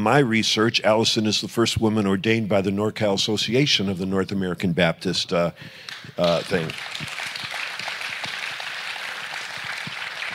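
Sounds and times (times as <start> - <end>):
speech: 0.0 - 7.4
audience clapping: 5.8 - 10.3.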